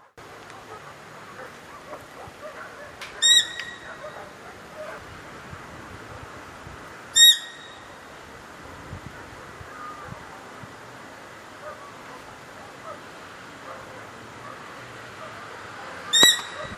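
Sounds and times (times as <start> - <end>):
coruja diabo owl call: 0.0 - 5.1, 7.1 - 8.2, 9.2 - 10.6, 11.4 - 16.7.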